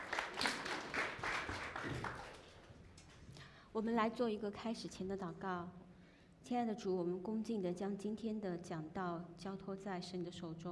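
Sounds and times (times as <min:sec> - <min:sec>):
audience clapping in welcome: 0:00.0 - 0:02.8
speech: 0:03.8 - 0:05.8, 0:06.5 - 0:10.7.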